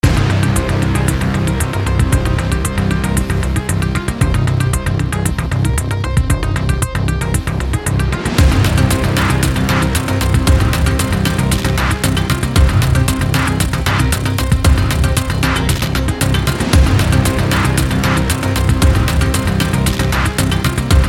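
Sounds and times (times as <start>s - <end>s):
music: 0.0s - 21.0s.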